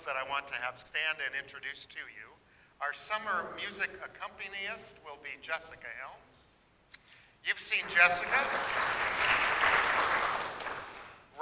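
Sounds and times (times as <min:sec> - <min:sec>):
speech: 0:00.0 - 0:06.5, 0:07.4 - 0:10.8
crowd clapping: 0:07.8 - 0:11.2.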